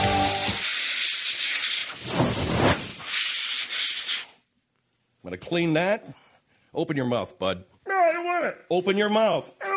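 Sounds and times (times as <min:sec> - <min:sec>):
cooking pot hissing with steam: 0:00.2 - 0:04.4
speech: 0:05.4 - 0:09.6.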